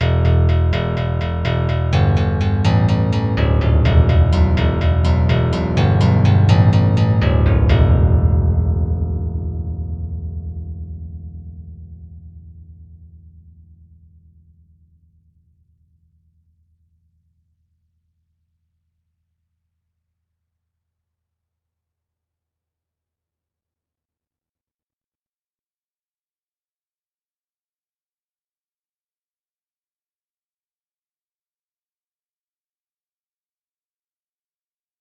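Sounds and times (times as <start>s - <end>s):
steel string guitar: 0.0s - 8.8s
bass: 0.0s - 17.5s.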